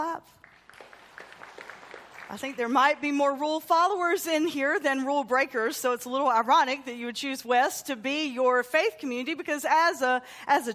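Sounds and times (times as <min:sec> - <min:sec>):
speech: 0:00.0 - 0:00.4, 0:02.3 - 0:10.7
audience clapping: 0:00.4 - 0:03.2.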